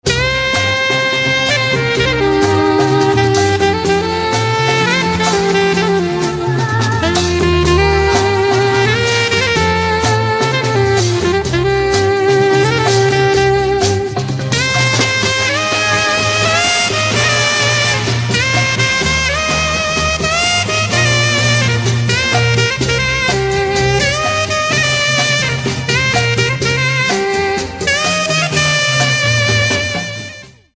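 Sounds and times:
saxophone: 0.0 - 30.7.

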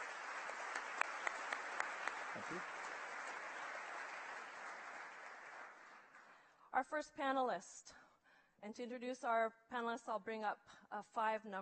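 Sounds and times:
audience applause: 0.0 - 6.4
speech: 2.4 - 2.8, 6.8 - 8.0, 8.6 - 11.6.

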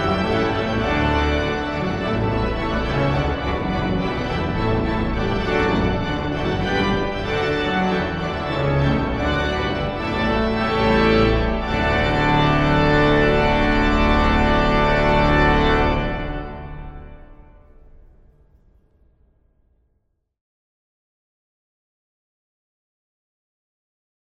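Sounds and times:
baroque orchestral piece: 0.0 - 17.7.

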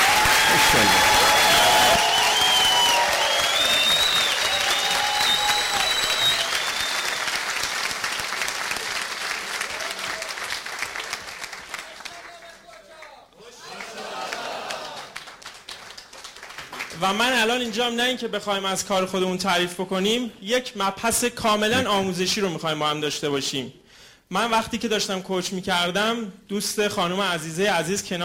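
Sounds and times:
voices cheering: 0.0 - 7.0, 13.4 - 15.2
audience applause: 0.0 - 17.0
speech: 0.7 - 1.1, 17.1 - 28.2.

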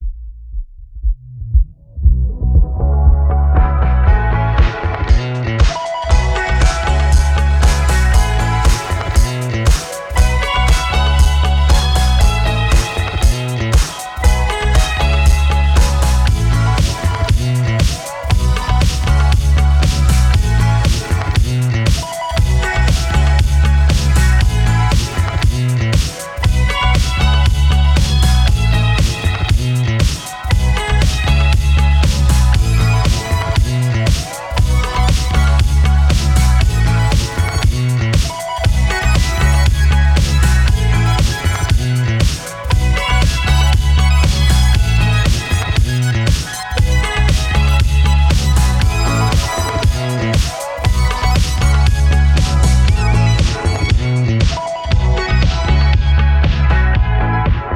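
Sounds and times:
future funk music: 2.2 - 57.7.

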